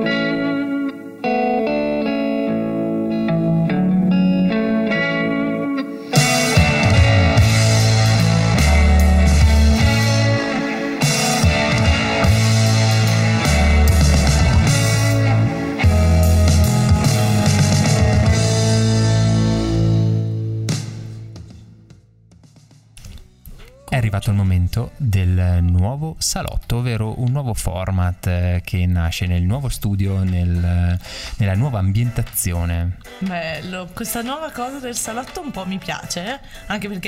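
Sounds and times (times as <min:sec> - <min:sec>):
song played between segments: 0:00.0 - 0:21.4
speech: 0:24.2 - 0:37.0.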